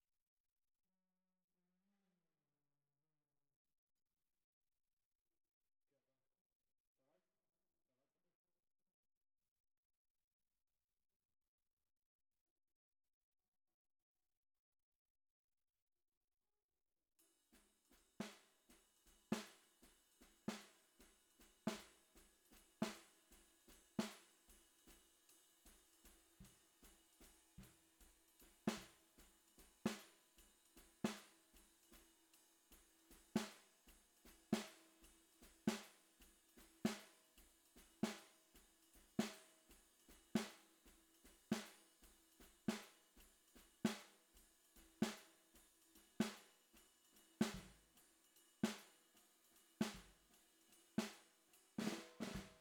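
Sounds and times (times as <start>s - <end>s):
bottom snare drum: 17.6s - 49.1s, 49.8s - 52.5s.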